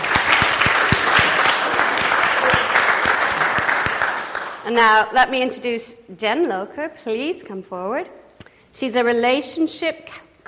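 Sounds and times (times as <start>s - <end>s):
audience hand clapping: 0.0s - 4.7s
speech: 4.7s - 8.2s, 8.8s - 10.2s.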